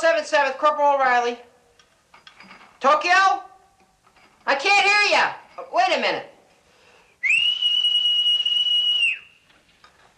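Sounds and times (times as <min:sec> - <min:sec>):
speech: 0:00.0 - 0:01.5, 0:02.8 - 0:03.5, 0:04.5 - 0:06.3
faint hiss: 0:00.0 - 0:10.1
whistle into telephone to clear static: 0:07.2 - 0:09.5.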